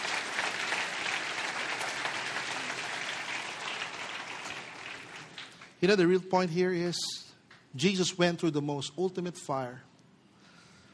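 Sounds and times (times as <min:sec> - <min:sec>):
crowd applause: 0:00.0 - 0:05.8
speech: 0:05.8 - 0:09.9.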